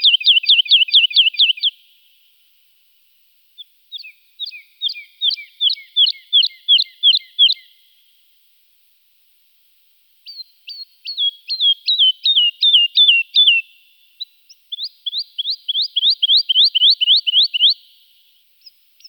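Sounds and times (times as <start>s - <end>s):
woodlark singing sweet falling notes and whistled phrases: 0.0s - 1.8s, 3.6s - 8.0s, 10.2s - 19.0s.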